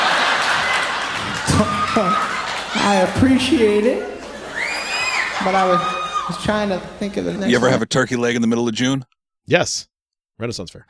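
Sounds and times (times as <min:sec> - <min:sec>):
audience clapping: 0:00.0 - 0:03.7
laughter: 0:00.0 - 0:05.9, 0:07.5 - 0:07.8
speech: 0:01.6 - 0:04.1, 0:05.4 - 0:10.8.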